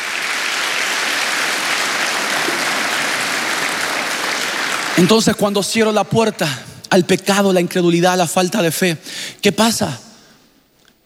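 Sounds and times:
audience applauding: 0:00.0 - 0:05.6
speech: 0:05.0 - 0:10.0.

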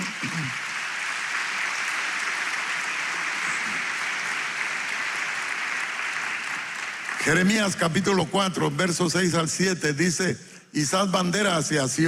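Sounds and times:
audience applause: 0:00.0 - 0:08.3
speech: 0:07.3 - 0:12.0.

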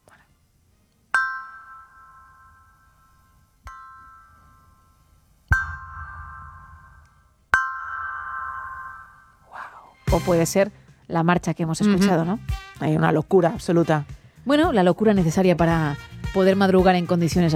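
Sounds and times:
gong: 0:01.2 - 0:09.4
speech: 0:10.1 - 0:17.5.

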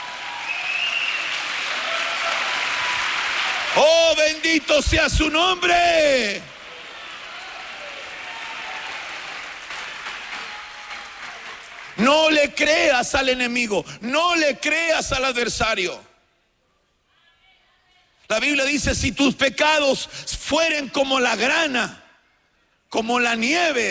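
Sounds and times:
audience clapping hands: 0:00.0 - 0:12.6
speech: 0:03.8 - 0:06.6, 0:12.0 - 0:16.1, 0:18.3 - 0:22.0, 0:22.9 - 0:23.8.

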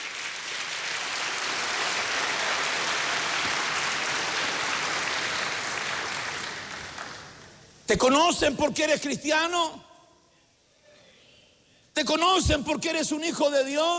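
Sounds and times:
audience clapping hands: 0:00.0 - 0:07.8
speech: 0:07.9 - 0:09.9, 0:12.0 - 0:13.9.

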